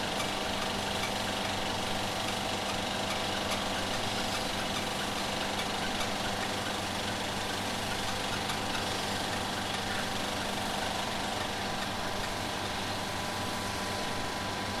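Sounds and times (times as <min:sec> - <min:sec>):
35mm cinema film projector deflection roller: 0:00.0 - 0:14.7.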